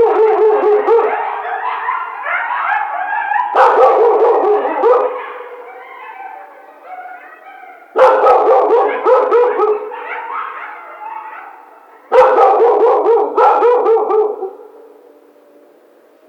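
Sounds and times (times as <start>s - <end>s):
coyote group howling with yodel-like notes and yips: 0.0s - 15.9s.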